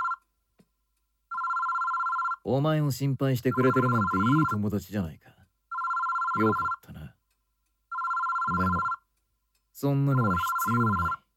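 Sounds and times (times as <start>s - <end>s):
telephone ringing: 0.0s - 0.2s, 1.3s - 2.5s, 3.5s - 4.6s, 5.7s - 6.8s, 7.9s - 9.0s, 10.1s - 11.2s
speech: 2.4s - 5.4s, 6.4s - 7.0s, 9.8s - 11.2s.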